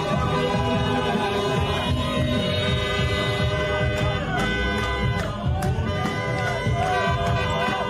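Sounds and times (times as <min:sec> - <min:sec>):
running footsteps of street crowd: 0:00.0 - 0:07.8
scattered high whistles or horn toots: 0:00.0 - 0:07.8
street crowd cheering and shouting: 0:00.0 - 0:07.8.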